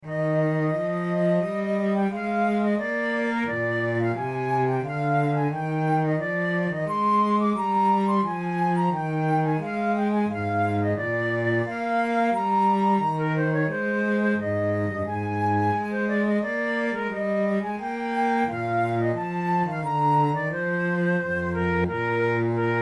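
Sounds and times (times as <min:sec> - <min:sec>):
adagio flute piece: 0:00.0 - 0:22.8.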